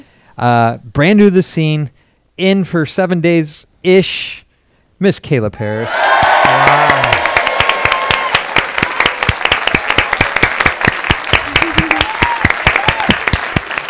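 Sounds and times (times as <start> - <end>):
speech: 0.4 - 4.4, 5.0 - 7.1
whooping voices: 5.6 - 10.4, 11.3 - 13.8
loud clapping: 5.9 - 13.8.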